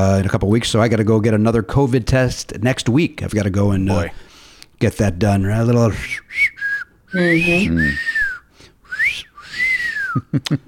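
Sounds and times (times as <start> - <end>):
speech: 0.0 - 8.2, 10.1 - 10.6
person whistling imitating a nurse's whistle: 6.0 - 10.4.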